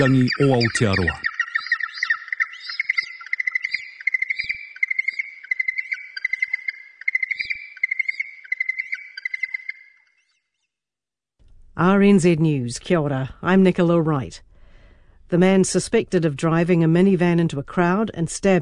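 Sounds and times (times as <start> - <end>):
speech: 0.0 - 1.3, 11.8 - 14.5, 15.3 - 18.6
yellow-eyed penguin call: 0.0 - 9.8.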